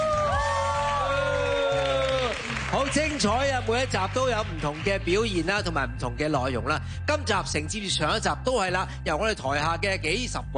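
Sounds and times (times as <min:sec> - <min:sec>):
students in the audience cheering and whooping: 0:00.0 - 0:02.7
speech: 0:02.8 - 0:10.5.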